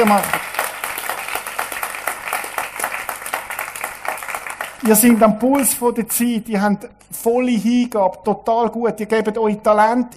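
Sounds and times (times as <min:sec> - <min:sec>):
speech: 0:00.0 - 0:00.4, 0:04.8 - 0:10.1
audience applause: 0:00.0 - 0:05.4.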